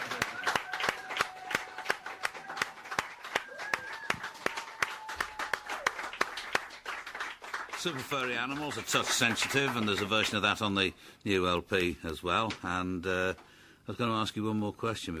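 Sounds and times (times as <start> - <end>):
audience cheering: 0.0 - 10.2
rhythmic audience clapping: 0.0 - 10.7
speech: 7.8 - 15.1.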